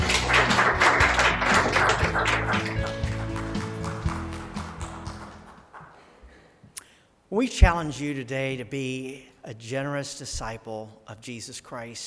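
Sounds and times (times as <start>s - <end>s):
audience clapping: 0.0s - 6.4s
speech: 7.4s - 12.0s.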